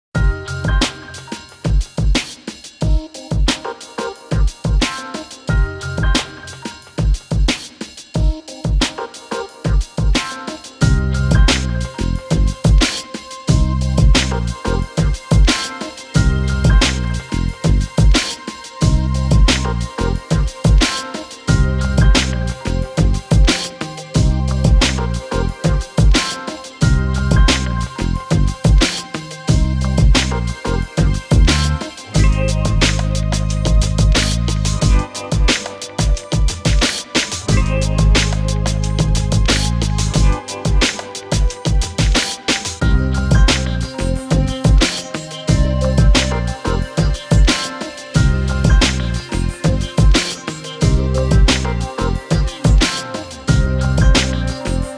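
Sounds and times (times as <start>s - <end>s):
chill ambient music: 0.2s - 54.9s.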